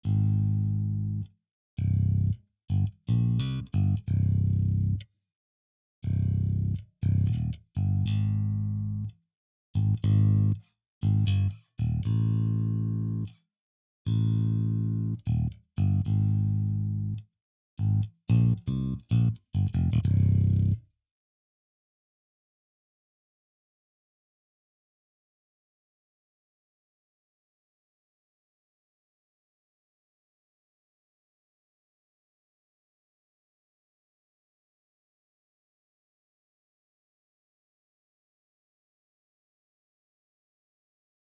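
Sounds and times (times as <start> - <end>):
bass: 0.0 - 5.1, 6.0 - 9.2, 9.8 - 13.4, 14.0 - 20.9.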